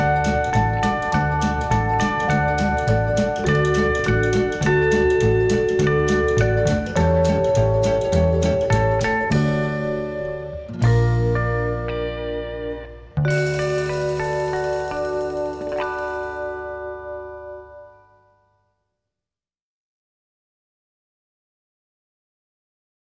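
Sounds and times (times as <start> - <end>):
Maori chimes: 0.0 - 11.8, 13.3 - 18.0
Hawaiian music: 0.0 - 18.0.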